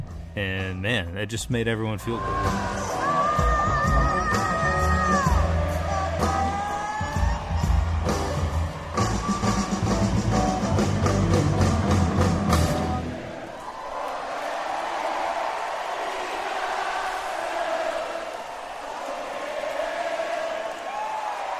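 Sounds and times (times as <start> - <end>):
speech: 0.4 - 3.5
large crowd singing and chanting together: 2.1 - 8.0, 14.7 - 21.5
band playing loudly: 2.2 - 13.2.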